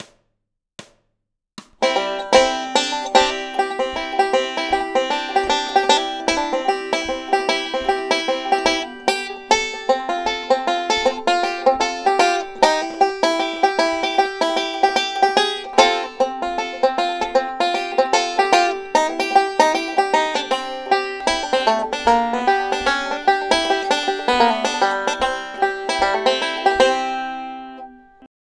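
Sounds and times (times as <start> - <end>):
blues music: 1.8 - 28.0.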